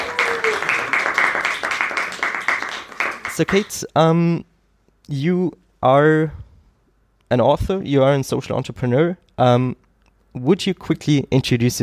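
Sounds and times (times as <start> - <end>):
audience round of applause: 0.0 - 3.7
speech: 3.4 - 4.5, 5.1 - 6.4, 7.3 - 11.8.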